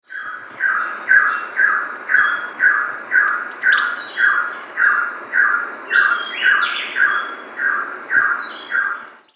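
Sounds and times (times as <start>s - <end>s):
bird sound: 0.0s - 9.3s.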